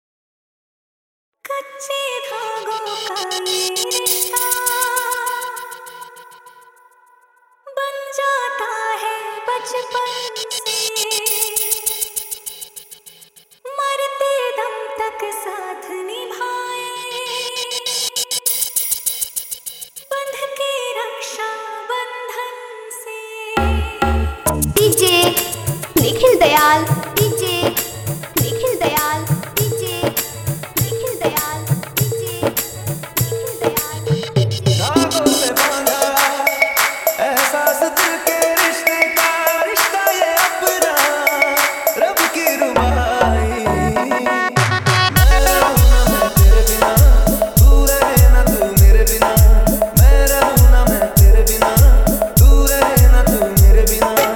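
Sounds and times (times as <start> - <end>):
Raksha Bandhan special pad mix DJ song: 2.7 - 6.4, 23.6 - 54.3.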